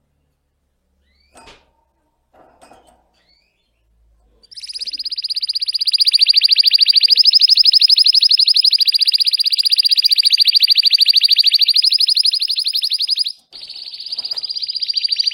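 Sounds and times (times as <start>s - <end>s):
canary singing: 4.4s - 15.3s.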